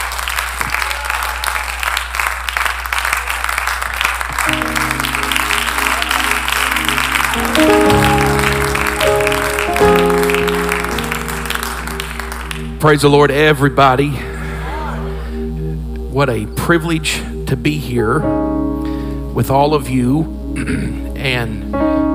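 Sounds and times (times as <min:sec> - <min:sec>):
audience clapping: 0:00.0 - 0:13.1
sustained organ or keyboard chords: 0:03.9 - 0:22.1
speech: 0:12.8 - 0:14.3, 0:16.2 - 0:18.4, 0:19.4 - 0:21.9.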